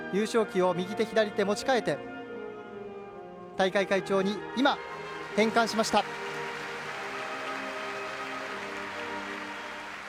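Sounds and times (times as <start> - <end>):
speech: 0.1 - 2.2, 3.6 - 6.2
large stadium crowd applauding: 4.8 - 10.0.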